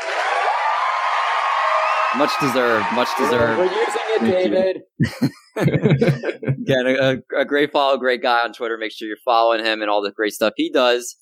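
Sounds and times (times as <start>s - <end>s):
crowd cheering from a sound-effect button: 0.0s - 4.8s
speech: 2.2s - 11.2s
laughter: 3.0s - 7.3s.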